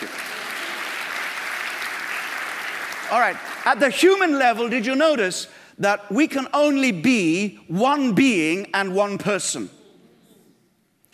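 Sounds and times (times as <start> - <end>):
audience round of applause: 0.0 - 3.8
speech: 3.1 - 9.8.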